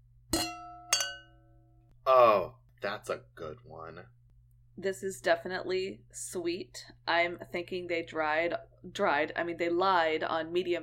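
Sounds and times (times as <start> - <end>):
wine glasses clinking in a toast: 0.4 - 1.4
speech: 2.1 - 4.2, 4.8 - 10.8.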